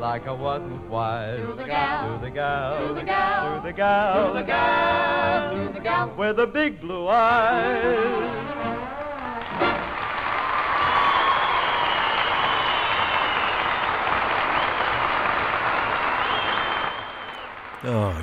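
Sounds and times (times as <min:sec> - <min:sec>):
speech: 0:00.0 - 0:08.9, 0:17.8 - 0:18.2
wild applause from concert audience: 0:09.0 - 0:18.2.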